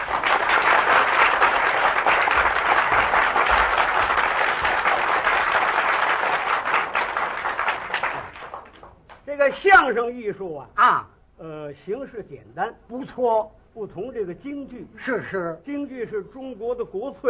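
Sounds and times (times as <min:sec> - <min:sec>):
audience applause: 0:00.0 - 0:09.2
speech: 0:09.5 - 0:17.2.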